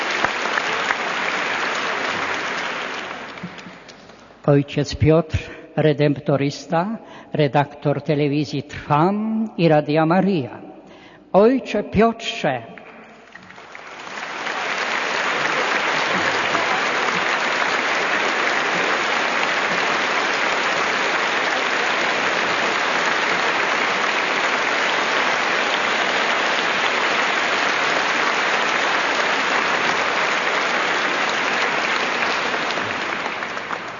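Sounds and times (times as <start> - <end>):
audience applause: 0.0 - 4.4, 13.1 - 33.9
speech: 4.5 - 10.6, 11.3 - 12.7.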